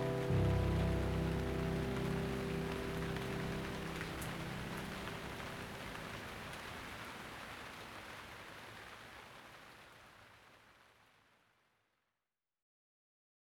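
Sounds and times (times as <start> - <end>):
piano music: 0.0 - 6.3.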